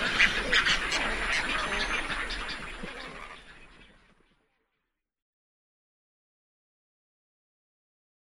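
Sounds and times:
herons and storks calling together: 0:00.0 - 0:04.0.

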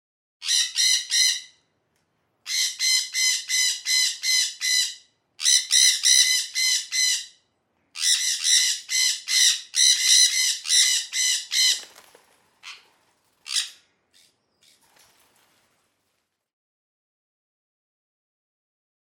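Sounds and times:
sun conures screeching: 0:00.4 - 0:01.6, 0:02.5 - 0:07.4, 0:08.0 - 0:15.8.

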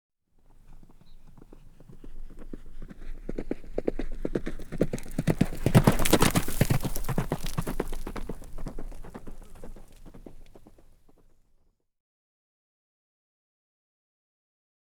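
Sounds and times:
horse galloping fast: 0:00.4 - 0:11.5.

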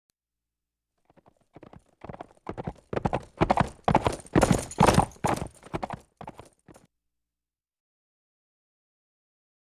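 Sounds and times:
horse hoofbeats cantering: 0:01.1 - 0:06.9.

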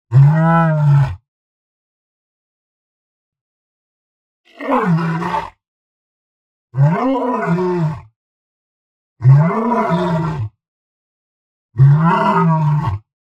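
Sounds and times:
lion roaring: 0:00.1 - 0:01.2, 0:04.5 - 0:05.6, 0:06.8 - 0:08.1, 0:09.2 - 0:10.5, 0:11.8 - 0:13.1.

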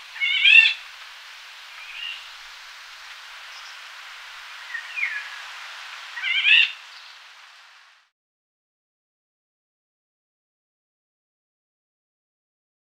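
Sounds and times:
Eurasian golden oriole singing fluty whistled phrases: 0:00.0 - 0:08.1.

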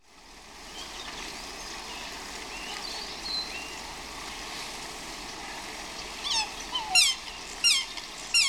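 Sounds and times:
swans squawking: 0:06.1 - 0:08.4.

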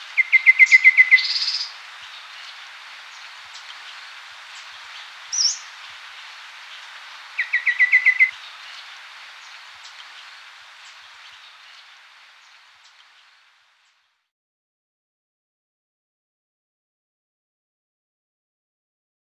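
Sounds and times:
golden babbler singing piping notes and whistles: 0:00.0 - 0:03.8, 0:06.7 - 0:11.5.

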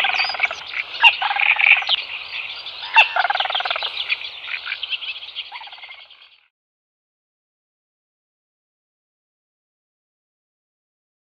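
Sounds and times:
little crake calling in clipped notes: 0:00.0 - 0:06.5.

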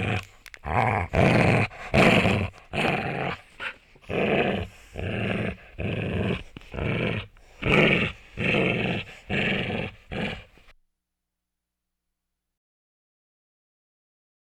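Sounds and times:
dog growling: 0:00.0 - 0:10.7.

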